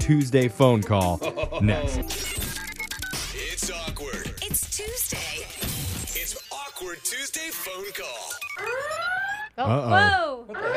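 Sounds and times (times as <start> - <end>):
speech: 0.1 - 2.4, 6.8 - 10.7
comedic friendship alarm sound effect, wavering electronic tone: 7.8 - 10.7.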